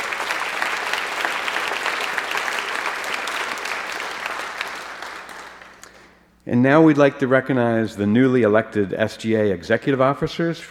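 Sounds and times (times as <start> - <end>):
audience applause: 0.0 - 6.2
speech: 6.5 - 10.7.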